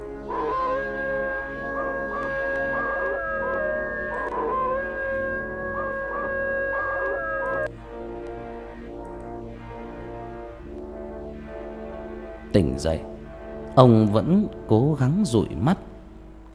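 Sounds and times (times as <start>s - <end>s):
chained dog howling eerily: 0.3s - 7.7s
speech: 12.6s - 13.1s, 13.8s - 15.8s.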